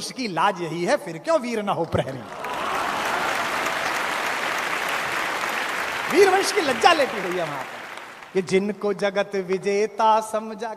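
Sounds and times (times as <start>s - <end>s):
speech: 0.0s - 2.4s, 6.1s - 10.7s
audience applause: 2.2s - 8.5s.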